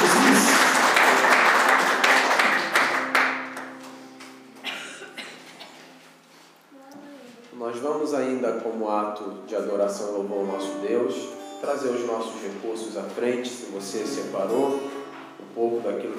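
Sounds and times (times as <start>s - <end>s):
audience applauding loudly: 0.0s - 4.0s
speech: 7.7s - 14.9s, 15.6s - 16.1s.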